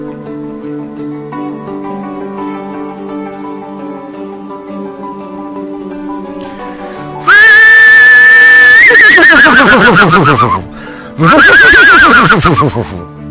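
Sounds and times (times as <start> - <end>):
horse neighing in a barn: 7.3 - 13.0.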